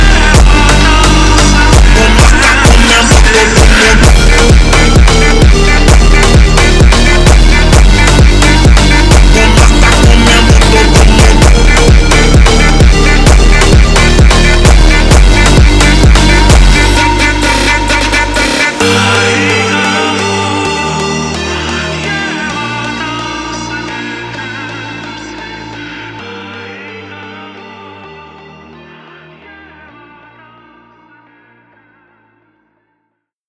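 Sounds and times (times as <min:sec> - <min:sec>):
funk music: 0:00.0 - 0:26.3.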